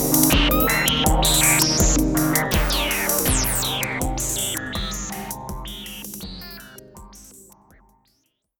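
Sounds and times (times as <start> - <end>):
Analog Rytm drum machine with SH filter: 0.0 - 8.0.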